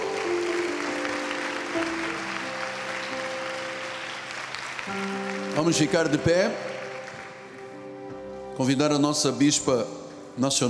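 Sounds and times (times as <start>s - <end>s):
audience applause: 0.0s - 7.9s
speech: 4.9s - 6.7s, 8.6s - 10.6s.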